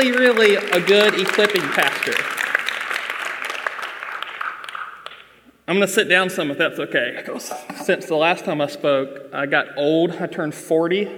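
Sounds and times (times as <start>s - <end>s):
speech: 0.0s - 2.4s, 5.7s - 11.1s
audience applause at a church gathering: 0.0s - 5.2s.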